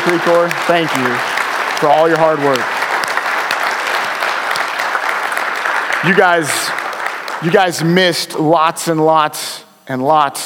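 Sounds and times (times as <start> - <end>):
audience applause: 0.0 - 8.0
speech: 0.1 - 2.8, 6.0 - 6.8, 7.4 - 10.4.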